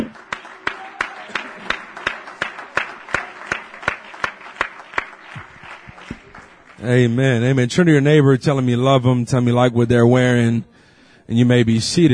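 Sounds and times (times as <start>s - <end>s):
audience clapping in unison: 0.0s - 7.2s
speech: 6.8s - 10.7s, 11.3s - 12.1s.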